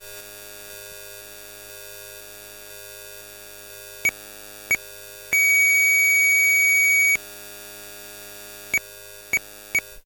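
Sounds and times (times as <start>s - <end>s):
electromagnetic noise: 2.6s - 10.0s.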